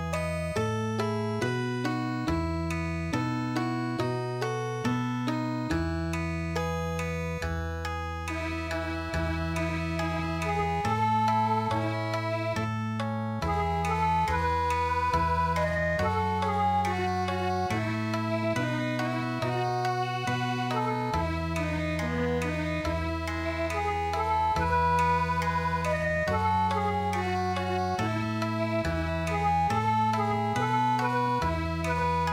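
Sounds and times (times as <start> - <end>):
Okinawan MIDI music: 0.1 - 32.3.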